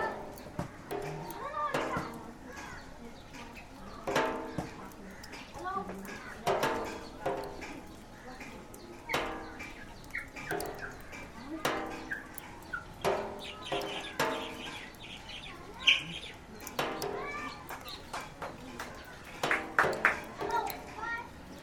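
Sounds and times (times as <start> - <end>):
rain dripping into oil drum collecting rainwater in Nepal: 0.0 - 21.6.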